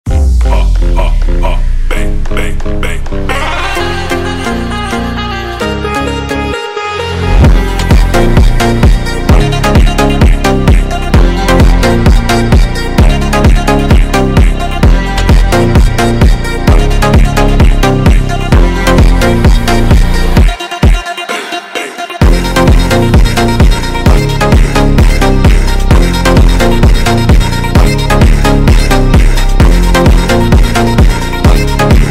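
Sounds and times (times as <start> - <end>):
phonk music: 0.0 - 32.0.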